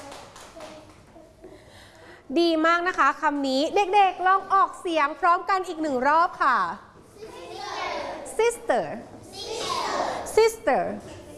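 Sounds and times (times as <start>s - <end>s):
group of children clapping: 0.0s - 1.2s
speech: 2.3s - 6.9s, 8.4s - 9.2s, 10.4s - 11.2s.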